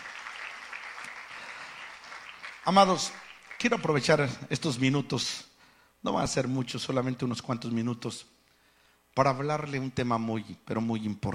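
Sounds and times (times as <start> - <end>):
congregation applauding at a Spanish-language church service: 0.0 - 4.5
speech: 2.6 - 8.4, 9.2 - 11.3.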